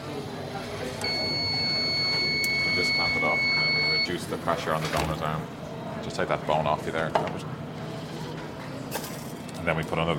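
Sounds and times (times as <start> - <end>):
faint voices: 0.0 - 10.1
blood donation machine beep: 1.0 - 4.2
speech: 3.4 - 7.6, 9.6 - 10.1.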